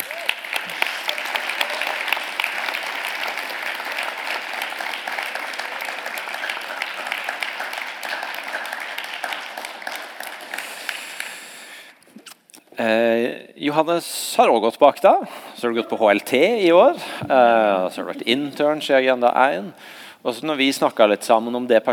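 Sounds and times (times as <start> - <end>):
audience applause: 0.0 - 11.8
speech: 12.8 - 21.9.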